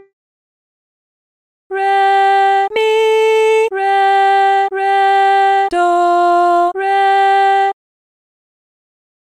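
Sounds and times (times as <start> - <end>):
person singing solfa training exercise: 1.7 - 7.8.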